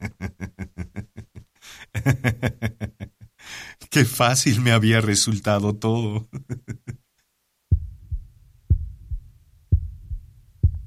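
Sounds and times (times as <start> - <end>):
laughter: 0.0 - 3.2, 6.3 - 7.0
speech: 2.0 - 2.9, 4.0 - 6.4
muffled heartbeat: 7.7 - 10.8.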